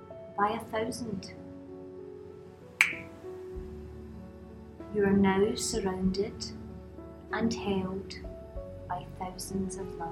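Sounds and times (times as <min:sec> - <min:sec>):
speech: 0:00.4 - 0:01.4, 0:04.9 - 0:06.6, 0:07.3 - 0:08.3, 0:08.9 - 0:10.1
finger snap: 0:02.8 - 0:03.1.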